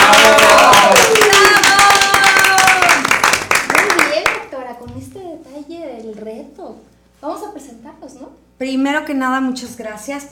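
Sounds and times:
audience clapping to welcome presenters at an event: 0.0s - 4.5s
speech: 0.1s - 1.2s, 6.7s - 10.2s.

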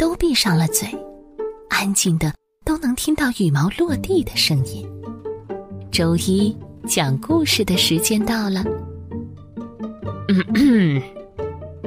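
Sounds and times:
speech: 0.0s - 1.1s, 1.8s - 5.0s, 5.9s - 8.9s, 10.3s - 11.2s
loud gruff throat clearing: 10.3s - 11.1s.

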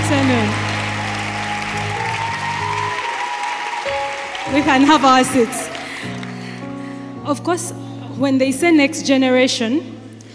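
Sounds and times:
crowd applauding: 0.0s - 7.0s
speech: 4.5s - 5.7s, 7.2s - 9.9s.

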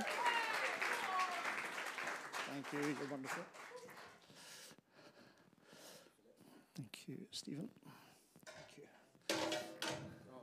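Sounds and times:
cheers and voices: 0.0s - 1.7s
audience applauding: 0.0s - 4.5s
speech: 2.5s - 3.6s, 7.1s - 8.0s.

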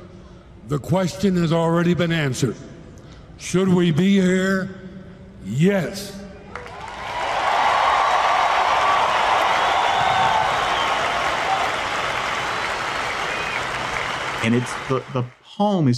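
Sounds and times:
speech: 0.7s - 2.7s, 3.4s - 4.8s, 5.4s - 6.2s, 14.4s - 15.9s
crowd applause: 6.6s - 15.4s.

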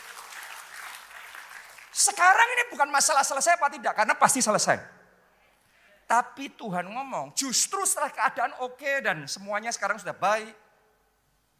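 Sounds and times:
audience applause: 0.0s - 2.0s
speech: 2.0s - 5.0s, 6.1s - 10.6s.

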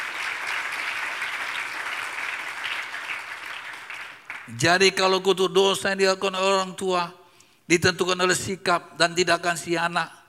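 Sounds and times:
audience applause: 0.0s - 4.5s
speech: 4.5s - 10.2s.

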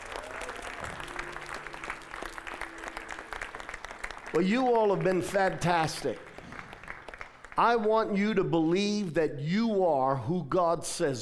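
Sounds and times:
church audience applause: 0.0s - 7.6s
speech: 4.4s - 6.3s, 7.6s - 11.1s.

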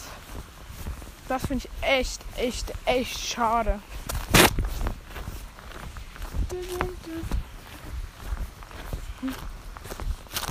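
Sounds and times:
person's footsteps on an outdoor walk home: 0.0s - 10.4s
speech: 1.3s - 4.1s, 6.6s - 7.4s, 9.2s - 9.5s.

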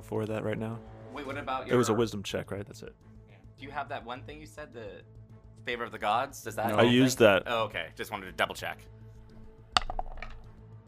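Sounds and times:
speech: 0.1s - 9.0s
dice rolling and bouncing off other dice: 9.7s - 10.5s.

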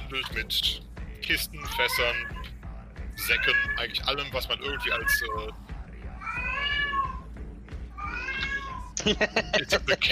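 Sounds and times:
speech: 0.1s - 2.4s, 3.2s - 5.7s, 9.0s - 10.0s
cat meowing: 1.6s - 2.5s, 3.2s - 3.9s, 4.6s - 5.4s, 6.2s - 7.3s, 8.0s - 9.6s
laughter: 9.0s - 10.0s.

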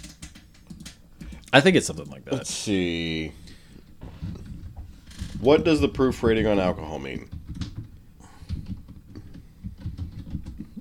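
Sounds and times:
typing on a computer keyboard in an ASMR setting: 0.0s - 2.2s, 7.2s - 10.7s
speech: 1.5s - 3.4s, 5.4s - 7.3s.

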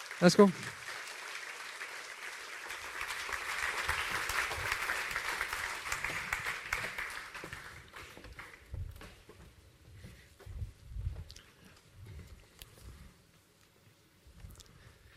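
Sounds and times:
church audience applause welcoming a preacher: 0.0s - 8.8s
speech: 0.2s - 0.8s.

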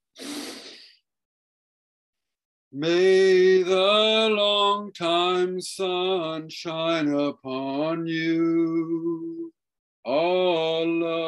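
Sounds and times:
person breathing in deeply before a closing prayer: 0.1s - 1.0s
speech: 2.7s - 11.2s.

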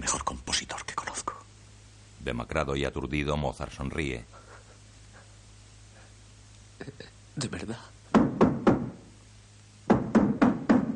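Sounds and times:
speech: 2.3s - 4.4s, 6.8s - 8.0s
knocking on a door: 8.1s - 9.0s, 9.9s - 10.9s.

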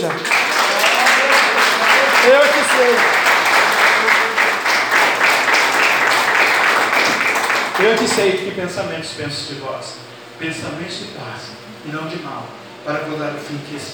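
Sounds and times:
speech: 0.0s - 0.4s, 2.2s - 3.3s, 7.8s - 13.9s
church audience applause: 0.0s - 8.6s.

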